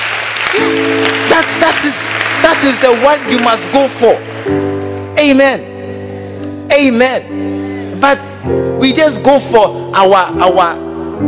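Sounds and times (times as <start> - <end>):
audience clapping: 0.0 - 4.8
speech: 1.4 - 5.7, 6.8 - 11.2.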